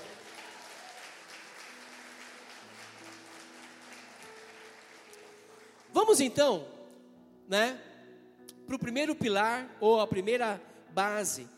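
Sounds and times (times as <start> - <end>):
audience applauding: 0.0 - 6.0
speech: 6.0 - 6.8, 7.5 - 7.9, 8.7 - 11.5.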